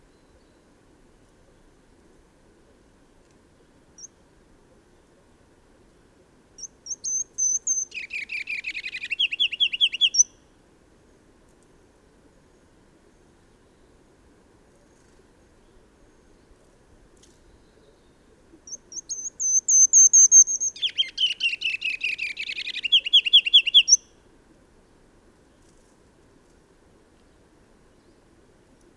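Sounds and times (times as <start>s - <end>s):
songbird singing: 0.0s - 0.8s, 3.6s - 4.2s, 6.6s - 10.4s, 17.2s - 24.2s, 27.2s - 28.9s.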